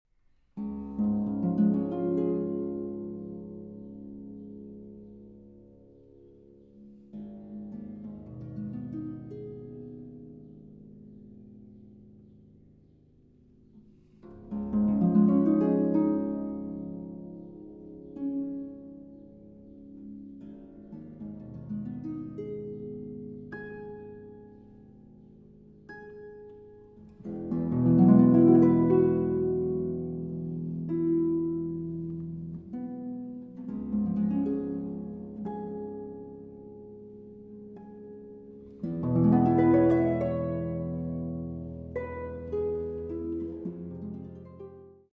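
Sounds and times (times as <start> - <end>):
harp: 0.6 - 45.1.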